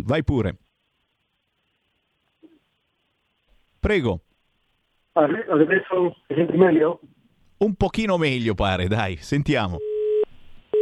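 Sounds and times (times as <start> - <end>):
speech: 0.0 - 0.6, 3.8 - 4.3, 5.2 - 9.9
telephone busy tone after dropped call: 9.8 - 10.8.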